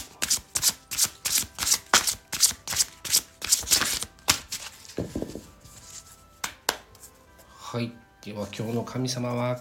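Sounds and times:
tarot, Japanese deity and oracle cards shuffled and drawn: 0.0s - 4.8s
speech: 7.8s - 9.5s.

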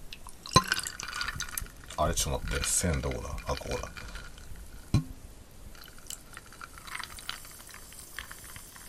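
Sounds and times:
tonic water pouring into a glass, fizzing: 0.1s - 5.0s, 5.7s - 8.8s
crackling carbonation of tonic water: 0.1s - 8.8s
sharp clink: 0.5s - 1.5s
speech: 2.0s - 4.1s.

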